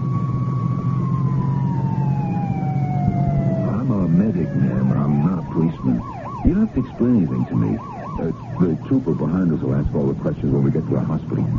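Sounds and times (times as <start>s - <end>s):
ambulance siren driving away: 0.0s - 11.5s
continuous low engine rumble: 0.0s - 11.5s
speech: 4.4s - 11.5s.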